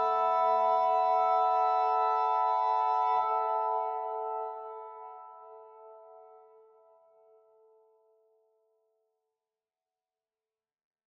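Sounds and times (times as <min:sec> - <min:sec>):
bugle: 0:00.0 - 0:06.3
flutes: 0:00.0 - 0:06.8.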